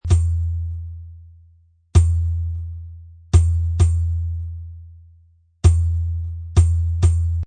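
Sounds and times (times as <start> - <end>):
low hand drum beat: 0.0 - 1.0, 2.0 - 4.8, 5.6 - 7.4.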